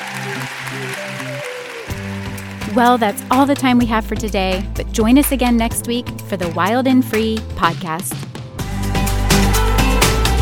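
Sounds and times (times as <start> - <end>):
audience applause: 0.0 - 3.3
speech: 0.3 - 1.6, 2.8 - 8.2
simple melodic music line: 1.6 - 10.3.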